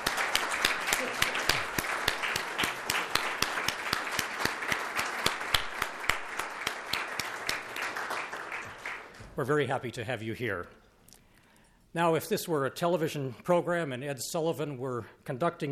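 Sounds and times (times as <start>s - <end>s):
crowd applauding: 0.0s - 9.4s
speech: 9.4s - 10.8s, 11.9s - 15.6s.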